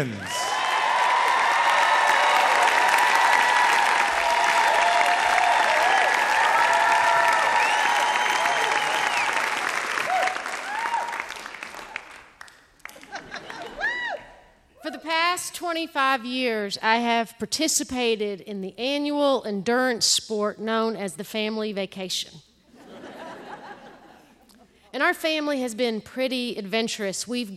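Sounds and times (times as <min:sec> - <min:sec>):
speech: 0:00.0 - 0:00.4, 0:15.7 - 0:22.5, 0:25.0 - 0:27.5
audience applause for a storyteller in Nashville: 0:00.0 - 0:14.2
audience whoops and cheers: 0:00.2 - 0:11.5, 0:13.6 - 0:14.4
laughter: 0:12.9 - 0:14.1, 0:22.7 - 0:24.8.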